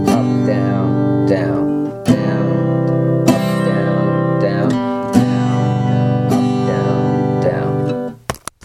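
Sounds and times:
strumming: 0.0 - 8.6.

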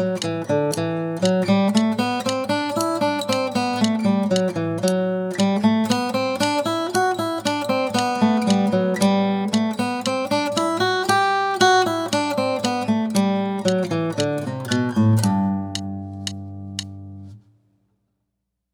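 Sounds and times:
musical scale study: 0.0 - 17.6.

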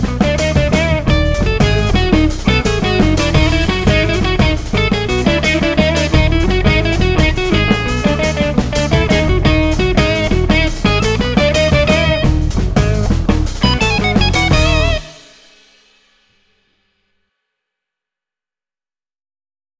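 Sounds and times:
guitar playing a locrian natural 7 scale: 0.0 - 15.5.

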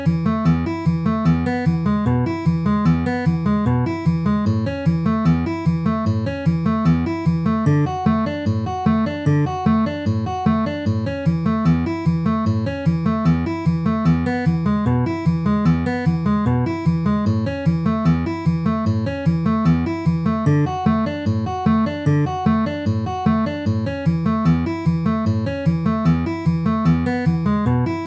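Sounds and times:
D A E A picking pattern with alternating bass at 150 bpm: 0.0 - 28.0.

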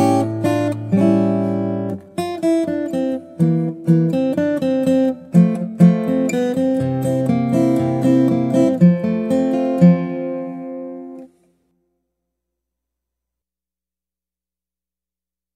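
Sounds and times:
guitar: 0.0 - 11.9.

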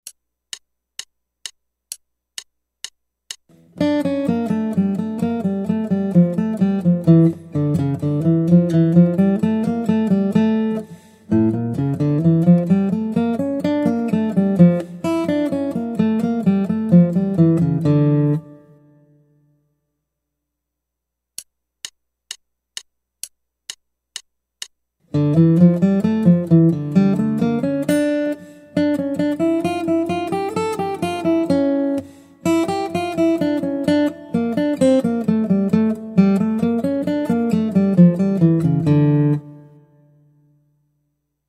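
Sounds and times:
guitar: 3.5 - 19.5, 25.1 - 40.8.

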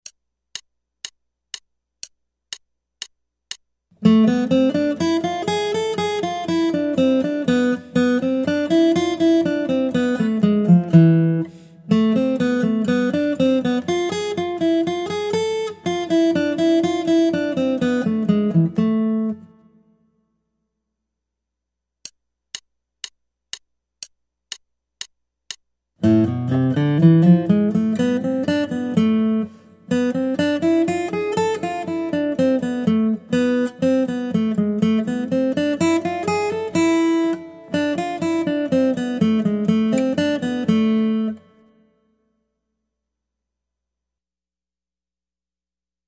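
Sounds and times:
guitar: 4.0 - 20.0, 26.0 - 42.0.

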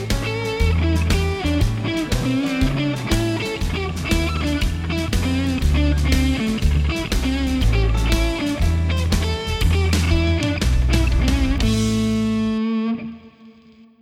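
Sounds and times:
claves playing blues rhythm: 0.0 - 13.5.

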